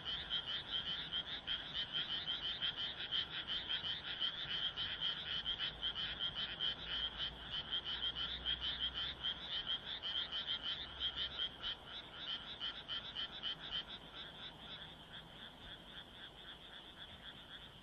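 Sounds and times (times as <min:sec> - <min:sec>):
many frogs croaking together: 0:00.0 - 0:17.8.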